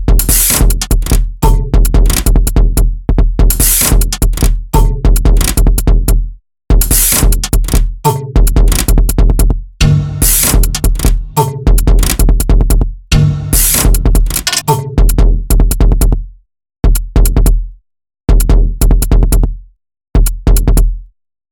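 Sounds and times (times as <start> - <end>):
snare drum: 0.0 - 2.5, 3.5 - 5.7, 6.8 - 9.0, 9.8 - 12.4, 13.1 - 15.2
kick drum: 0.0 - 21.1.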